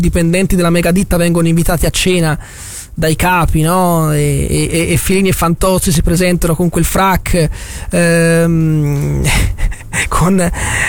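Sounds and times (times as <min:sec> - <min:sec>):
speech: 0:00.0 - 0:10.8
breathy noise: 0:02.4 - 0:03.0, 0:07.5 - 0:10.8
dog Ivan il Terribile growling in a Fantozzi film scene: 0:08.6 - 0:10.0.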